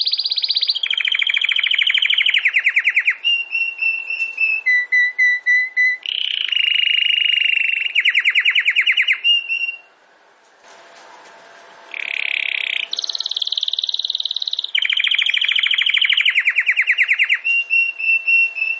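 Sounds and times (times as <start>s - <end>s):
domestic canary singing trills: 0.0s - 9.9s, 11.9s - 18.7s.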